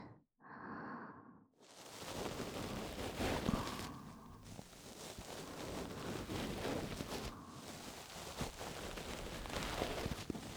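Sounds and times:
ear pick scratching: 1.8s - 10.5s.

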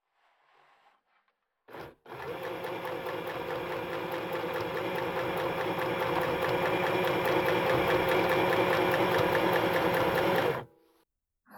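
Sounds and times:
sewing machine sewing a costume: 1.7s - 10.7s.

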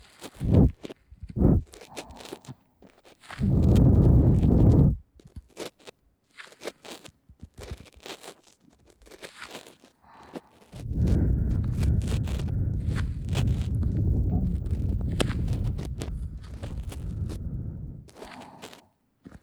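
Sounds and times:
squeezing sound, ASMR: 0.4s - 0.7s, 1.4s - 2.4s, 10.8s - 18.8s
ear cleaning in the left ear, ASMR: 0.4s - 0.8s, 1.4s - 2.5s, 3.4s - 5.0s, 10.7s - 18.9s.

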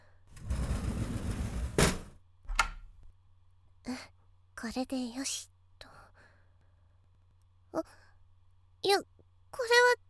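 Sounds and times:
door closing: 0.4s - 3.1s
door being locked: 2.5s - 3.0s
speech: 3.9s - 5.5s, 7.7s - 8.0s, 8.8s - 10.0s.

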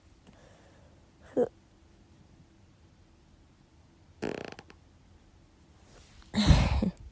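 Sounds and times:
speech: 1.4s - 1.6s
fart: 4.2s - 4.8s.

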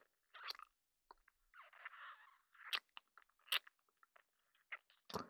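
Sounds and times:
deep wet kissing sounds: 0.3s - 0.7s, 1.5s - 3.7s.

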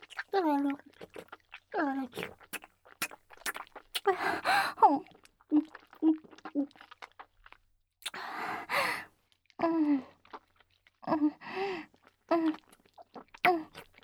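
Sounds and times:
oral sex sounds: 0.4s - 6.8s, 8.0s - 9.8s, 13.4s - 13.9s.

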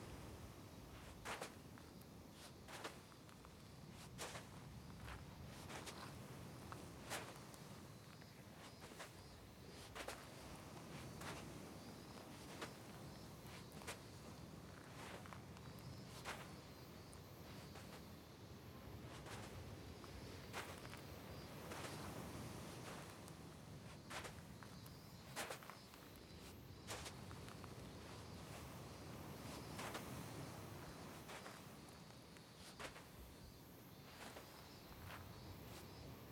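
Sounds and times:
beach ambience: 0.0s - 36.2s.

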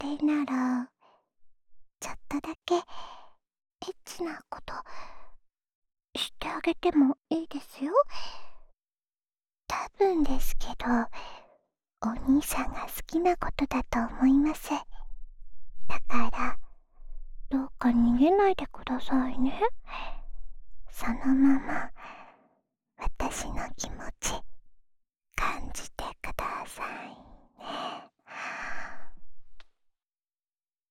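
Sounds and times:
woman whispering ASMR: 0.0s - 1.0s, 2.0s - 2.9s, 3.8s - 4.9s, 6.2s - 8.4s, 9.7s - 11.2s, 12.0s - 15.1s, 15.9s - 16.7s, 17.5s - 20.2s, 20.9s - 22.2s, 23.0s - 24.5s, 25.4s - 29.2s.

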